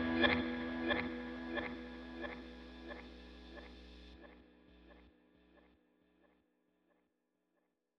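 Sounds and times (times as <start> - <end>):
blues guitar: 0.0 - 3.9.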